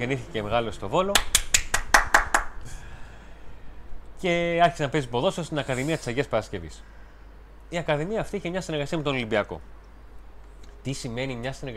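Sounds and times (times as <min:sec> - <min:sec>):
speech: 0:00.0 - 0:01.5, 0:04.2 - 0:07.0, 0:07.7 - 0:09.8, 0:10.8 - 0:11.7
person clapping hands: 0:01.2 - 0:02.6.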